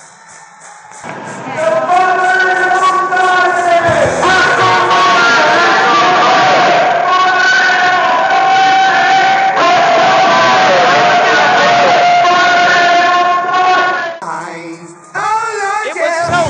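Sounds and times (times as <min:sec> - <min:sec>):
protesting crowd shouting and chanting: 0:00.0 - 0:16.4.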